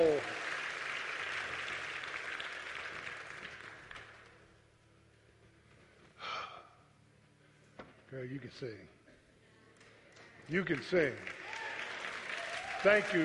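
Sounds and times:
audience clapping for choir: 0.0s - 4.4s, 10.5s - 13.2s
speech: 8.1s - 9.0s, 10.5s - 11.4s, 12.8s - 13.2s.

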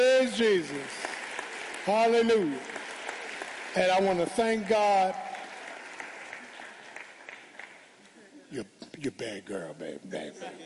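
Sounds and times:
choir hand clapping: 0.0s - 8.2s
speech: 0.4s - 1.1s, 1.8s - 2.8s, 3.7s - 5.2s, 8.5s - 10.6s.

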